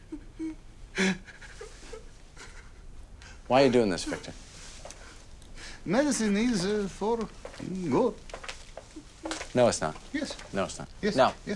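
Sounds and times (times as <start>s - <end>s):
detainee sobbing in strained whimpers: 0.0s - 2.8s
speech: 3.5s - 4.4s, 5.8s - 8.3s, 9.5s - 11.5s.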